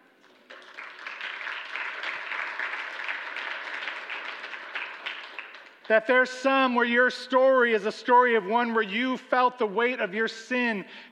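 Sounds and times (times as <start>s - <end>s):
people clapping: 0.0s - 6.2s
speech: 5.9s - 11.1s.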